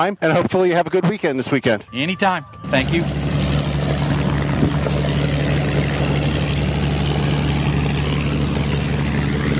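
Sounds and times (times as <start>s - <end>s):
speech: 0.0s - 3.3s
Supermarine Spitfire aircraft engine: 2.2s - 9.5s.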